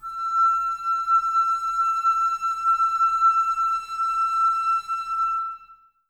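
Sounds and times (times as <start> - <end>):
flute: 0.0 - 6.0.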